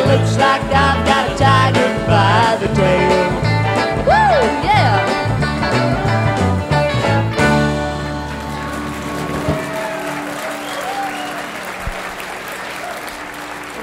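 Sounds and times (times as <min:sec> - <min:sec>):
song: 0:00.0 - 0:13.8
speech: 0:00.1 - 0:03.4
audience applause: 0:07.7 - 0:13.8
audience member whistling: 0:10.0 - 0:12.1.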